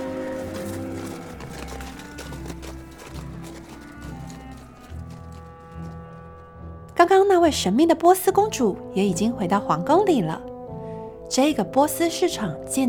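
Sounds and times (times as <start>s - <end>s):
hoofbeats of camels carrying merchants away from a Persian market: 0.0s - 6.6s
speech: 7.1s - 10.5s, 11.3s - 12.8s.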